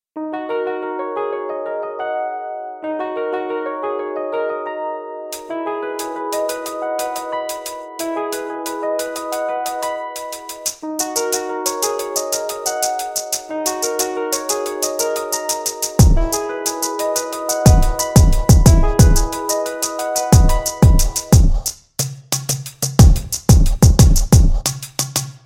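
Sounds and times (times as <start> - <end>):
groove music: 5.3 - 25.4.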